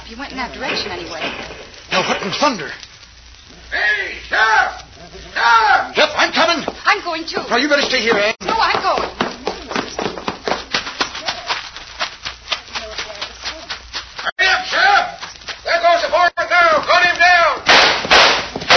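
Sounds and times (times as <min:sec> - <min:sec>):
speech: 0:00.1 - 0:02.9, 0:03.7 - 0:09.1
people shouting: 0:03.6 - 0:06.6, 0:14.4 - 0:18.7
gunshots: 0:17.6 - 0:18.7.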